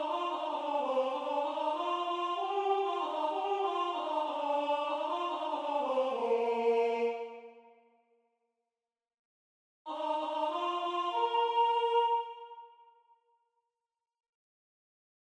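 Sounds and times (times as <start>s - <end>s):
tenor singing: 0.0s - 7.5s, 9.9s - 12.7s.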